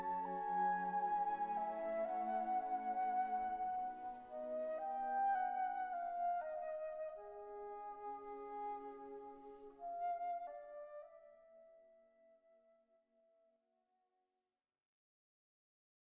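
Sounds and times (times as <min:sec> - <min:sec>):
flute concerto: 0:00.0 - 0:12.8.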